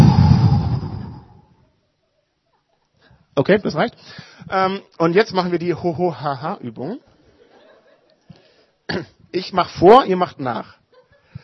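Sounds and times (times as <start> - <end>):
group exhaling during a diaphragm breathing exercise: 0.0 - 1.4
speech: 3.4 - 7.1, 8.9 - 10.8.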